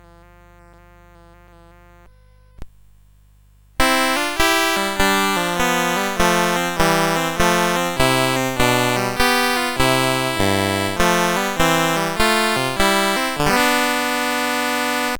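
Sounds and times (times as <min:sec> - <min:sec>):
duet: 0:03.8 - 0:15.1.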